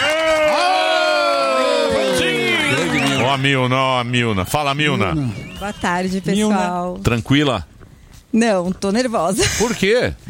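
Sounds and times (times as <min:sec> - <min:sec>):
audience applause and cheering: 0:00.0 - 0:06.5
speech: 0:03.3 - 0:07.7, 0:08.3 - 0:10.2.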